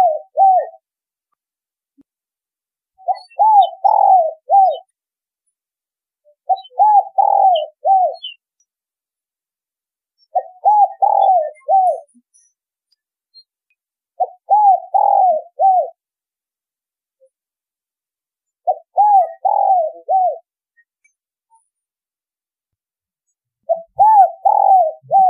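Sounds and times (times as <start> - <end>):
spotted dove cooing: 0.0 - 0.8, 3.0 - 4.9, 6.4 - 8.4, 10.3 - 12.1, 14.2 - 16.0, 18.6 - 20.5, 23.7 - 25.2.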